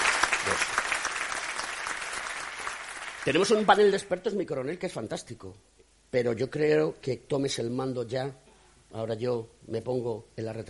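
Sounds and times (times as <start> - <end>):
audience applause: 0.0 - 3.9
speech: 3.2 - 10.6.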